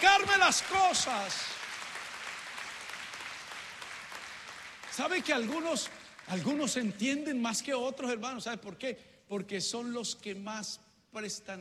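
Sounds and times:
speech: 0:00.0 - 0:01.6, 0:05.0 - 0:11.5
audience applause: 0:00.0 - 0:06.4.

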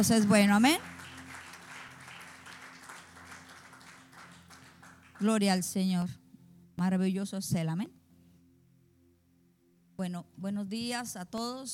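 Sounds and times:
speech: 0:00.0 - 0:00.9, 0:05.2 - 0:06.2, 0:06.8 - 0:08.0, 0:10.0 - 0:11.7
audience applauding: 0:00.2 - 0:05.4.

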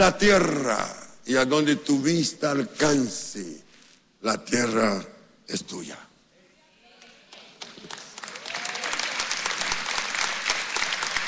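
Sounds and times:
speech: 0:00.0 - 0:03.6, 0:04.2 - 0:06.1
crowd applause: 0:07.3 - 0:11.2.

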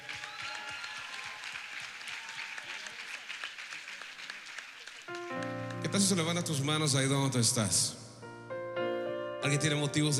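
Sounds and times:
audience applause: 0:00.0 - 0:06.7
speech: 0:05.9 - 0:08.0, 0:09.4 - 0:10.1.

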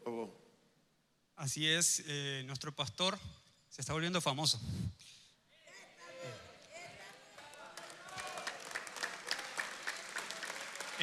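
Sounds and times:
speech: 0:01.4 - 0:05.2
audience applauding: 0:07.3 - 0:11.0.

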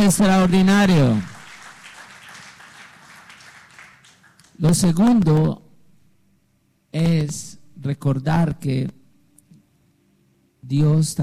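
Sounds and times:
speech: 0:00.0 - 0:01.3, 0:04.6 - 0:05.6, 0:06.9 - 0:09.0, 0:10.6 - 0:11.2
crowd applauding: 0:00.0 - 0:04.7.

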